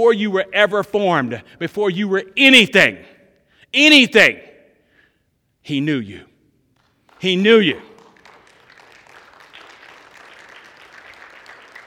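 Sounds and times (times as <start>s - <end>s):
speech: 0.0s - 3.1s, 3.7s - 4.5s, 5.6s - 6.3s, 7.2s - 7.9s
audience clapping: 6.7s - 11.8s.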